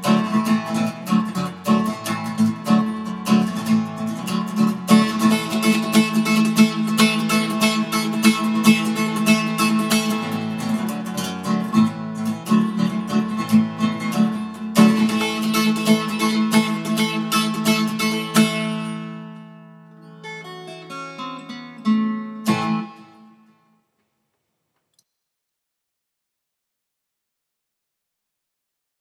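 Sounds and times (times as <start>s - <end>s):
bluegrass music: 0.0s - 19.3s.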